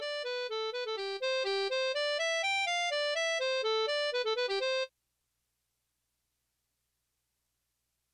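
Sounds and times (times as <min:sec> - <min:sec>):
baroque hoedown harp lead in C: 0:00.0 - 0:04.8.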